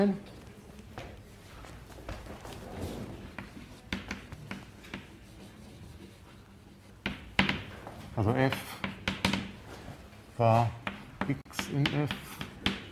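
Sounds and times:
speech: 0.0s - 0.3s, 8.2s - 8.8s, 10.4s - 12.3s
writing on a board during a mathematics lecture: 3.2s - 9.7s, 10.8s - 12.9s.

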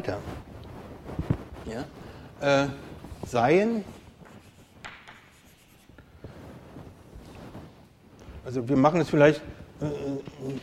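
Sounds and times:
speech: 0.0s - 0.4s, 1.6s - 4.0s, 8.4s - 10.6s
writing a small index by hand: 4.3s - 6.0s.

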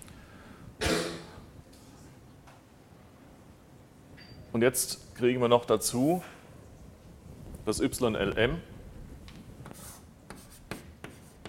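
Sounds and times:
low hum: 0.0s - 11.4s
speech: 4.6s - 6.4s, 7.7s - 8.7s
writing on a board during a maths lecture: 9.6s - 11.4s.

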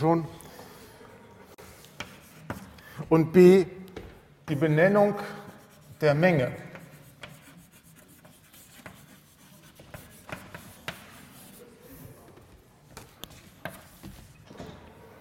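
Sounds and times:
speech: 0.0s - 0.4s, 2.5s - 3.8s, 4.5s - 5.4s, 6.0s - 6.7s
pen or chalk scratching while writing out a set definition: 6.8s - 11.6s.

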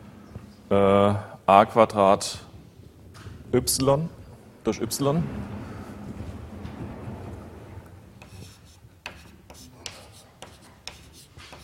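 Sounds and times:
speech: 0.7s - 2.5s, 3.5s - 5.5s
dull steady rumble: 2.6s - 8.6s
writing on a board during a maths lecture: 8.2s - 11.6s.

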